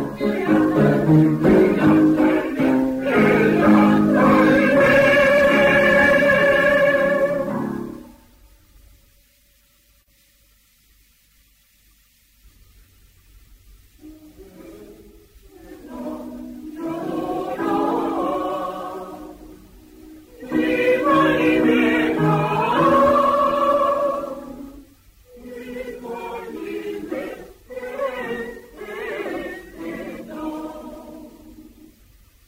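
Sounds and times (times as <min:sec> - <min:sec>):
female section of a mixed choir singing in Castelló: 0:00.0 - 0:08.2, 0:14.4 - 0:19.7, 0:20.3 - 0:32.0.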